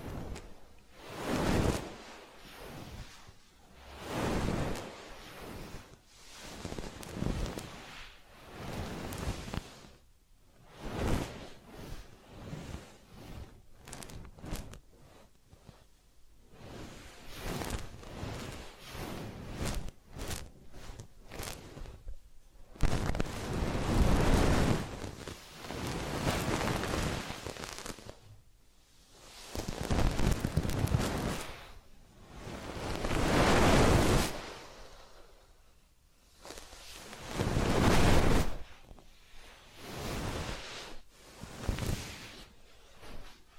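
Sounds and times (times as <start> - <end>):
soft rubbing and swishing strokes of massage and ear cleaning: 0.0 - 43.5.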